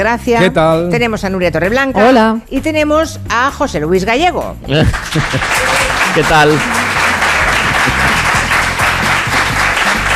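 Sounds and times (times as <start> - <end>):
speech: 0.0 - 6.8
laughter: 4.8 - 10.1
crowd applause: 4.9 - 10.1.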